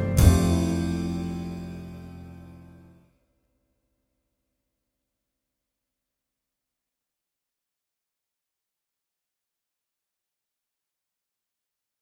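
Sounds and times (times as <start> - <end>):
harp note F: 0.0 - 2.9.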